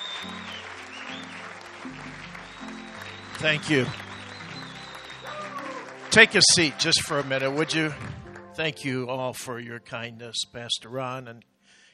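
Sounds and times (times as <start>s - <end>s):
church congregation applauding their pastor: 0.0s - 9.0s
speech: 3.4s - 4.0s, 6.1s - 11.5s.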